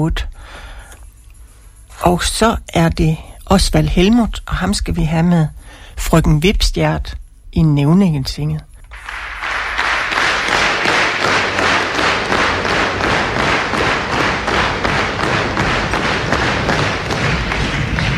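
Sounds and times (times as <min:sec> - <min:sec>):
speech: 0:00.0 - 0:00.6, 0:02.0 - 0:09.2
rhythmic audience applause: 0:08.8 - 0:18.1.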